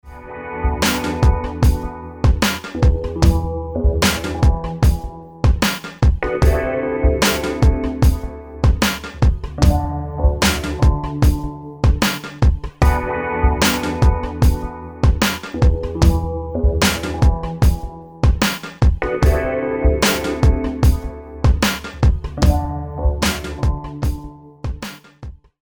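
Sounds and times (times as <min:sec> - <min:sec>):
chill music: 0:00.0 - 0:25.2.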